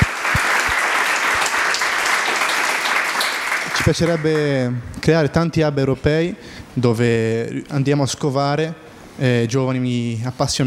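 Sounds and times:
audience applause: 0.0s - 4.5s
speech: 3.8s - 10.6s.

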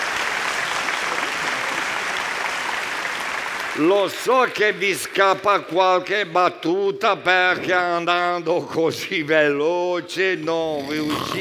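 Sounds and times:
crowd clapping: 0.0s - 6.4s
speech: 3.8s - 11.3s.

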